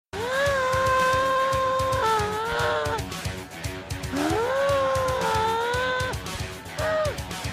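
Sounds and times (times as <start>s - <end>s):
person shouting: 0.2s - 3.0s, 4.1s - 7.2s.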